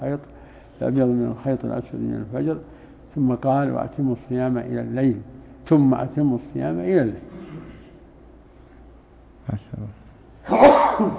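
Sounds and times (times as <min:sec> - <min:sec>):
speech: 0:00.0 - 0:07.4, 0:09.5 - 0:11.1
person sneezing during a religious talk on fasting: 0:10.4 - 0:11.1.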